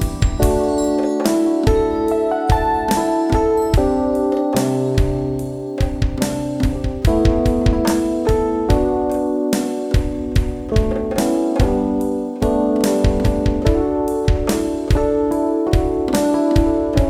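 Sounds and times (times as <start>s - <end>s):
Rhodes electric piano ambient music: 0.0s - 17.0s.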